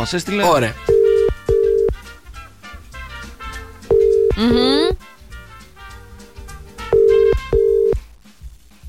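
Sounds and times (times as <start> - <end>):
speech: 0.0 - 0.9, 4.4 - 5.1
ringback tone of an outgoing telephone call on a Greek morning radio show: 0.9 - 2.0, 3.9 - 4.9, 6.9 - 8.0.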